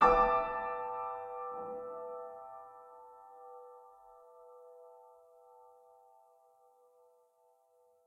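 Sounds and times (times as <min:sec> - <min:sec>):
piano: 0:00.0 - 0:08.0.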